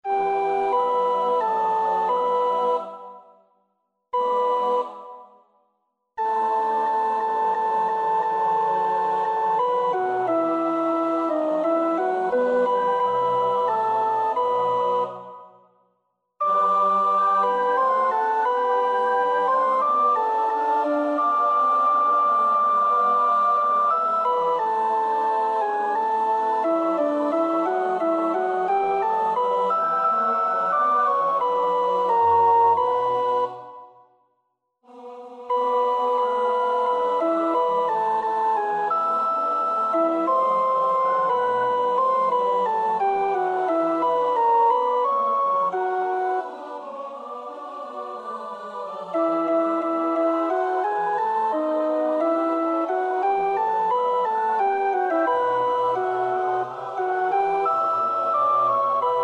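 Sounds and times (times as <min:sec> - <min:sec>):
soprano choir part singing: 0:00.0 - 0:03.4, 0:04.5 - 0:05.4, 0:06.2 - 0:15.6, 0:16.4 - 0:34.0, 0:34.8 - 0:59.2.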